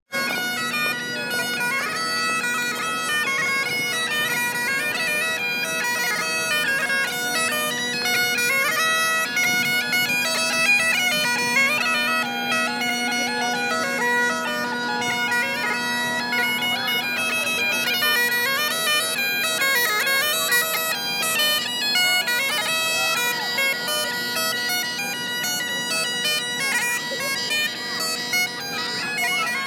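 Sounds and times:
bagpipe: 0:00.1 - 0:29.6.

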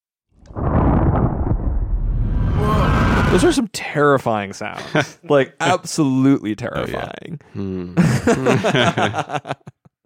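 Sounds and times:
explosion closing an intense sound piece: 0:00.4 - 0:03.6
speech: 0:03.4 - 0:09.8
laughter: 0:04.7 - 0:06.0, 0:08.0 - 0:10.0.

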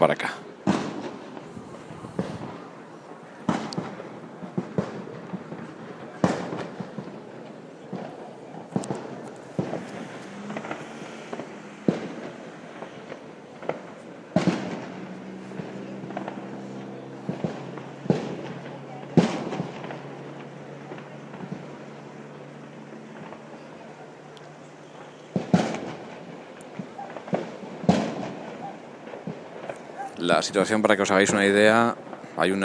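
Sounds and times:
speech: 0:00.0 - 0:00.4, 0:30.3 - 0:32.6
constant noise: 0:00.0 - 0:32.6
crowd firing shots at a town's patron saint festival procession: 0:00.6 - 0:02.8, 0:03.4 - 0:21.7, 0:24.8 - 0:26.2, 0:26.8 - 0:30.1.

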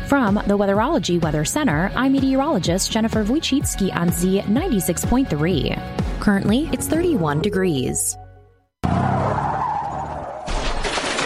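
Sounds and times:
speech: 0:00.1 - 0:08.2
car tires skidding before hitting a deer: 0:08.8 - 0:10.5.

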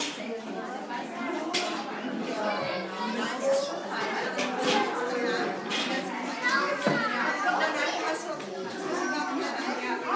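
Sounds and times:
playroom ambience: 0:00.0 - 0:10.1.

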